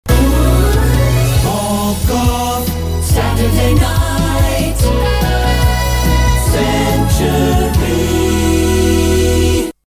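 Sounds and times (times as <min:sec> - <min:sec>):
jingle: 0:00.1 - 0:09.8.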